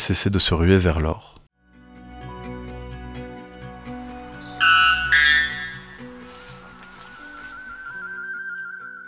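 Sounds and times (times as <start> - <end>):
speech: 0.0 - 1.4
birdsong with bright high whistled chirps: 3.6 - 8.2.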